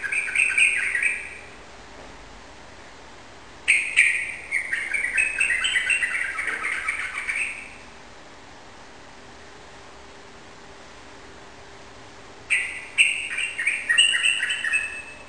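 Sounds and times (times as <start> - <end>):
yellow-vented bulbul singing rapid continuous chattering song indoors in a room: 0.0 - 1.6, 3.7 - 7.9, 12.5 - 15.2.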